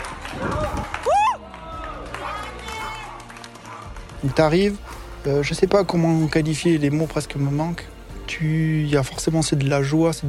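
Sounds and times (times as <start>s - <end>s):
spectators applauding runner at race finish: 0.0s - 4.6s
speech: 4.2s - 10.2s.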